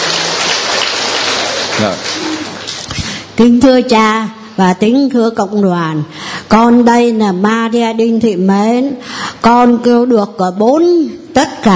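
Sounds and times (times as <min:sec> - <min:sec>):
audience applause: 0:00.0 - 0:02.9
speech: 0:01.8 - 0:02.4, 0:03.4 - 0:11.7.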